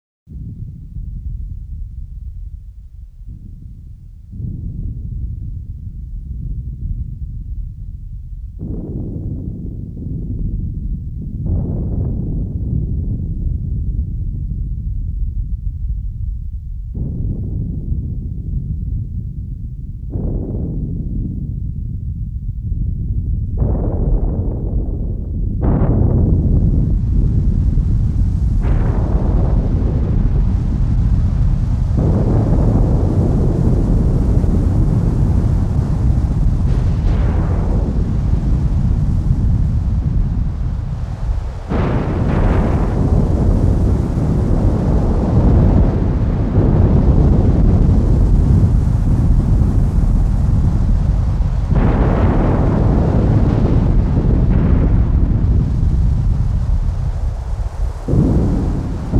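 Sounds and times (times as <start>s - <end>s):
thunderstorm: 0.3s - 59.1s.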